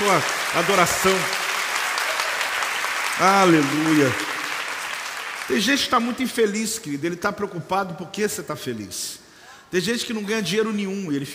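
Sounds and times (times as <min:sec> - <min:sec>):
audience clapping hands: 0:00.0 - 0:06.9
speech: 0:00.1 - 0:01.4, 0:03.2 - 0:04.3, 0:05.5 - 0:11.3.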